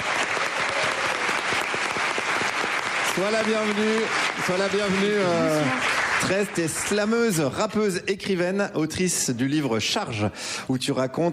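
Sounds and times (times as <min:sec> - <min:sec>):
audience applause: 0:00.0 - 0:07.3
speech: 0:03.2 - 0:11.3.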